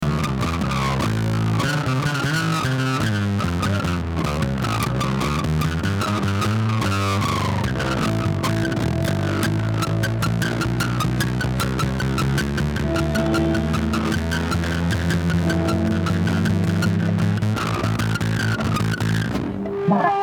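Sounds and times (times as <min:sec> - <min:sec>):
traffic jam: 0:00.2 - 0:20.1.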